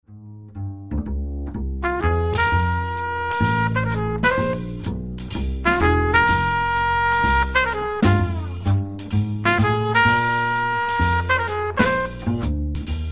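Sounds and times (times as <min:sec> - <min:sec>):
backing track without piano: 0:00.9 - 0:13.0.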